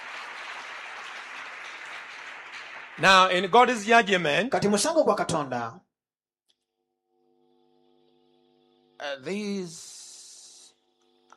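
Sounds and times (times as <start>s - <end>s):
hand clapping: 0.0s - 3.6s
speech: 3.0s - 5.8s, 9.1s - 9.9s.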